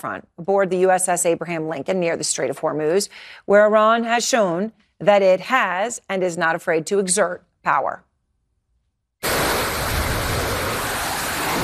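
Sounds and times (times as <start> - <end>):
speech: 0.0 - 8.1
fighter jet taking off from the USS Abraham Lincoln: 9.2 - 11.6.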